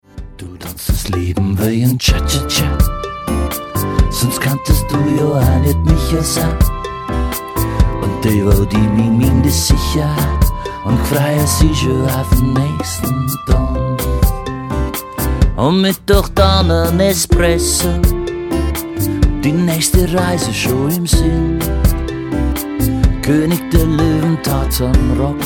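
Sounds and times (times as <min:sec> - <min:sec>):
cha cha cha music: 0:00.0 - 0:25.4.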